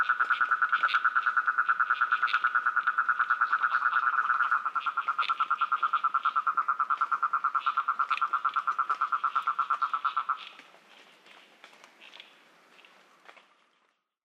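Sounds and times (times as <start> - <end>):
Rhinella ornata toad calling: 0.0 - 10.7.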